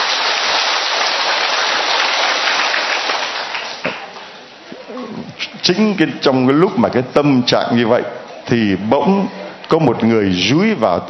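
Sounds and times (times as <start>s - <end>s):
big round of applause: 0.0s - 4.1s
speech: 5.6s - 11.0s.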